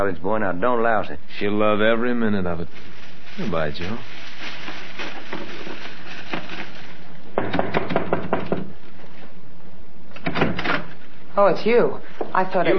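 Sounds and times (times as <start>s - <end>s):
speech: 0.0s - 4.6s, 11.4s - 12.7s
knocking on a door: 7.4s - 8.8s.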